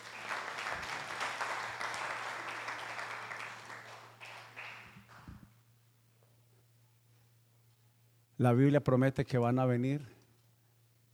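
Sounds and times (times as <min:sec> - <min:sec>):
audience applause for actors: 0:00.0 - 0:05.4
speech: 0:08.4 - 0:10.2.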